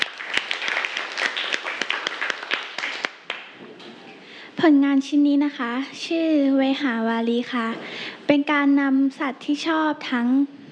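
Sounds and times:
classmates applauding: 0.0s - 3.6s
speech: 4.6s - 10.6s.

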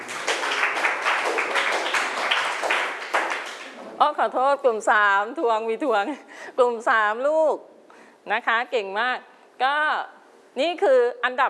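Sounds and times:
applause: 0.0s - 3.8s
speech: 4.0s - 11.4s.

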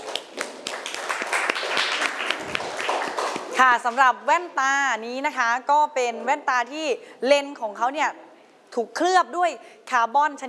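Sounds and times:
audience applause: 0.0s - 3.6s
speech: 3.6s - 8.2s, 8.8s - 10.4s.

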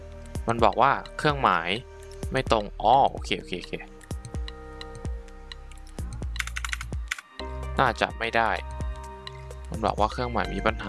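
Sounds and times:
speech: 0.5s - 3.9s, 7.8s - 8.7s, 9.7s - 10.8s
computer keyboard keystrokes: 4.0s - 7.4s.

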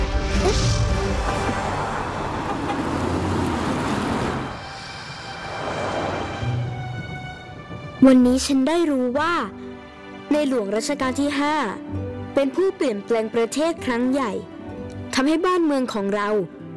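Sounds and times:
vehicle approaching and passing by: 0.2s - 7.9s
speech: 8.0s - 9.6s, 10.3s - 14.5s, 15.2s - 16.6s.

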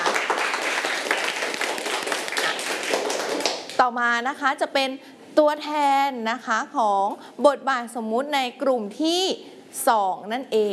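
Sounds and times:
audience applause: 0.0s - 3.7s
speech: 3.9s - 10.7s.

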